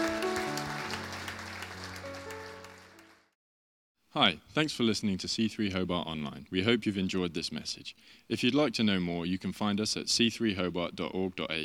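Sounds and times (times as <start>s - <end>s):
soft sustained keyboard chords: 0.0s - 3.2s
audience applause: 0.0s - 3.4s
speech: 4.2s - 11.6s.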